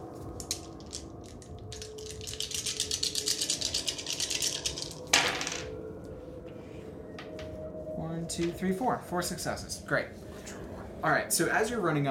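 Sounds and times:
dice shaken in a hand and thrown: 0.2s - 5.7s
speech: 8.4s - 10.2s, 11.0s - 12.0s.

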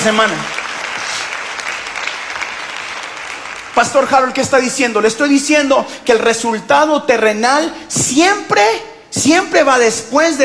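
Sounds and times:
speech: 0.0s - 0.6s, 3.8s - 10.4s
audience applause: 0.0s - 4.1s.

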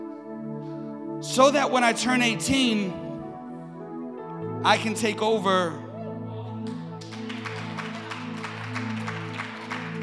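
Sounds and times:
speech: 1.2s - 3.0s, 4.6s - 5.8s
audience clapping: 6.6s - 10.0s.

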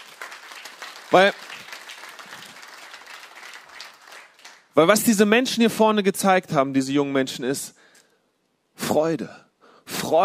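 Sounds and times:
audience applause: 0.0s - 4.7s
speech: 1.1s - 1.4s, 4.8s - 7.8s, 8.9s - 9.5s, 10.1s - 10.2s.

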